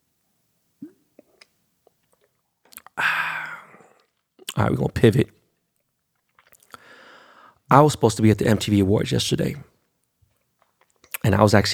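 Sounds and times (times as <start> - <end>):
person drinking water: 0.8 - 4.6, 6.2 - 7.2
speech: 4.5 - 5.4, 7.7 - 9.7, 11.3 - 11.7.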